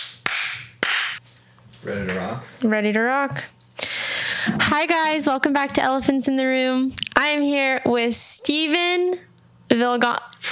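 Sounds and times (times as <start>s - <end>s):
single hand clap for editing sync: 0.0s - 1.2s
speech: 1.8s - 3.6s, 4.4s - 10.3s.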